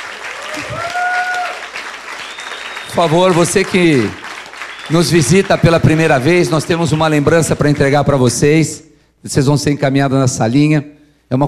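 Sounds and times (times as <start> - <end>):
congregation clapping during a Sunday morning church service: 0.0 - 7.8
speech: 0.5 - 1.0, 2.9 - 4.2, 4.9 - 11.4.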